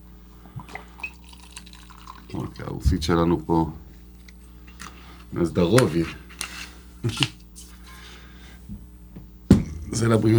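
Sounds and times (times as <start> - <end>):
liquid trickling and dripping into a glass: 0.6 - 2.6
speech: 2.3 - 3.8, 5.3 - 6.2, 7.0 - 7.4, 10.0 - 10.3
steady low hum: 2.3 - 5.2.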